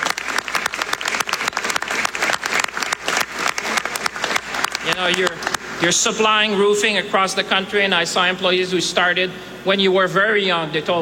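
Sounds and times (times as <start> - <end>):
crowd applauding: 0.0 - 5.6
speech: 5.0 - 11.0.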